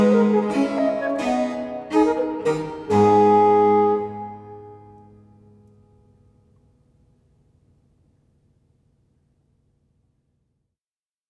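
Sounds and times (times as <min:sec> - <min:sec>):
flute sonata in A minor allegro: 0:00.0 - 0:05.3.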